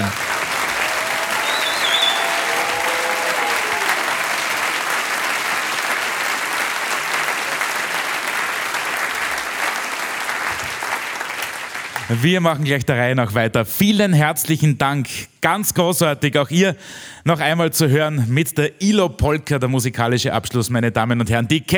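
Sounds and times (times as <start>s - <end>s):
audience applause: 0.0s - 12.2s
speech: 12.1s - 21.7s.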